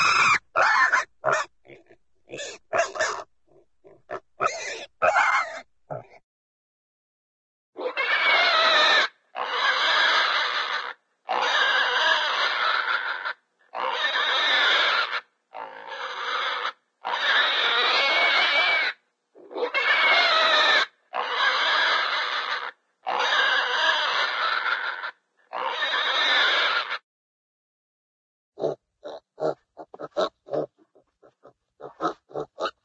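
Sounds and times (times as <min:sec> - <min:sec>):
cartoon pig grunts and squeals: 0:00.0 - 0:06.2, 0:07.8 - 0:27.0, 0:28.6 - 0:32.8.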